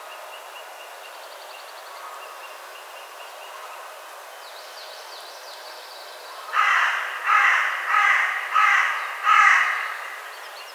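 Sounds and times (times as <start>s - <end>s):
Carrion crow Corvus corone cawing: 6.5s - 10.5s.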